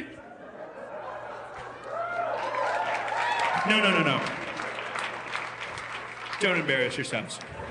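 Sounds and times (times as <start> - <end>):
laughter: 0.1 - 2.1
audience applause: 1.9 - 7.6
speech: 3.7 - 4.4, 6.4 - 7.6.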